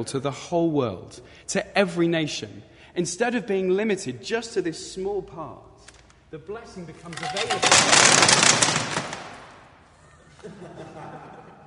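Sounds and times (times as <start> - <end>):
speech: 0.0 - 9.1, 10.4 - 11.4
chocolates scattered all over the floor: 7.1 - 9.6
laughter: 9.9 - 11.6.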